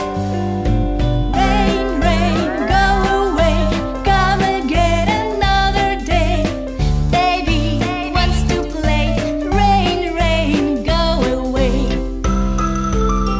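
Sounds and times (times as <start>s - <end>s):
nursery rhyme song: 0.2s - 13.3s.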